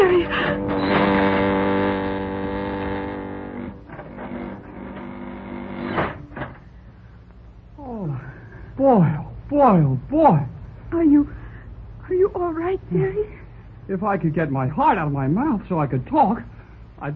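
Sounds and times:
elevator car coming down a shaft, radio drama effect: 0.0 - 7.0
heavy thumps: 0.0 - 7.6
speech: 8.8 - 11.3, 12.5 - 17.1.

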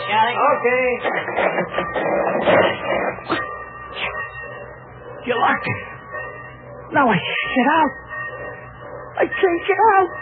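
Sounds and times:
speech: 0.1 - 2.9, 5.2 - 5.9, 6.9 - 8.0, 9.2 - 10.2
sliding door dragged along its track: 1.0 - 3.4.

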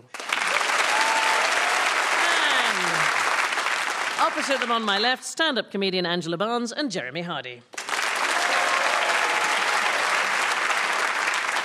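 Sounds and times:
studio audience applause welcoming panel show teams: 0.0 - 5.0, 7.8 - 11.6
speech: 4.2 - 7.8.

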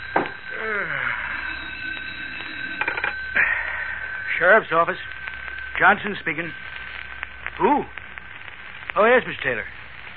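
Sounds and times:
telephone ringing on a desk: 0.0 - 6.8
speech: 4.4 - 5.1, 5.8 - 6.6, 7.6 - 8.0, 9.0 - 9.8.

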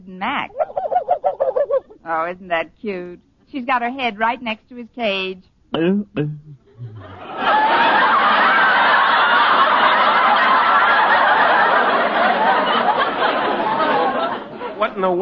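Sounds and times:
speech: 0.1 - 0.6, 2.1 - 6.6, 7.4 - 8.3, 14.9 - 15.2
frog call like a wolf whistle: 0.5 - 1.9
laughter: 5.8 - 15.2.

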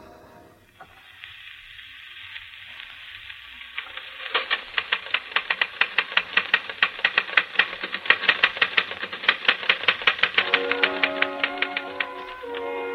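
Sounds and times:
typewriter typing played from phonograph record: 3.1 - 12.9.

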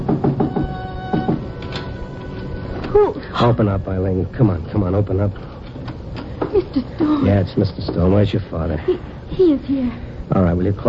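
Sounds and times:
knocking on a back door: 0.0 - 1.5
speech: 3.0 - 5.5, 6.5 - 10.8.

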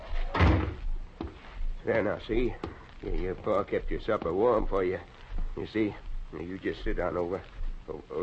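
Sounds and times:
door being opened: 0.2 - 0.8
speech: 1.9 - 8.2.

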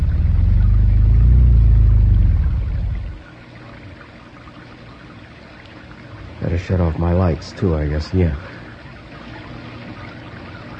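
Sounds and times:
rain: 0.0 - 4.1
speech: 6.6 - 8.6.

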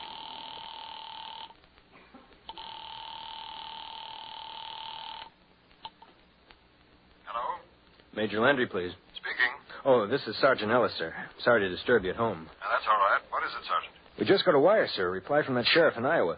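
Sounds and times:
telephone being dialed and ringing at a military police office: 2.5 - 5.3
speech: 8.2 - 9.0, 9.8 - 16.3.

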